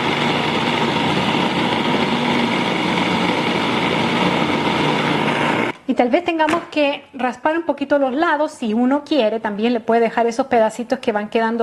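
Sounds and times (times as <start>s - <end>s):
food processor blending strawberries: 0.0s - 5.8s
speech: 6.0s - 11.6s.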